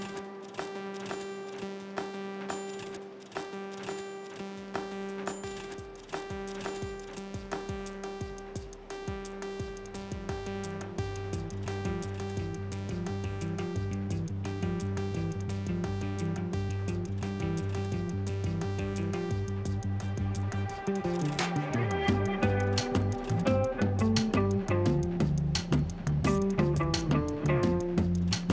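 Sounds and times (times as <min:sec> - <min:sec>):
drums with delay: 0:00.0 - 0:28.5
repeater guitar sketch: 0:14.8 - 0:28.5.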